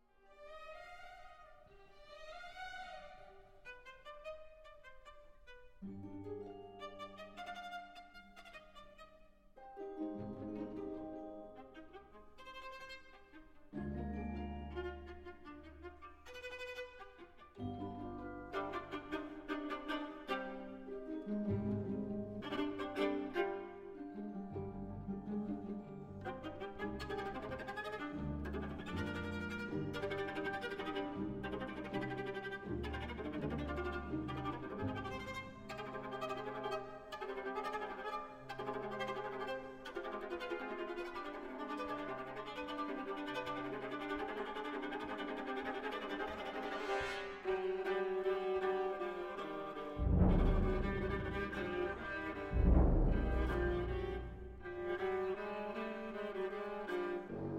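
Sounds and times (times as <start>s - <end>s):
viola playing a chaconne: 0.0s - 57.5s.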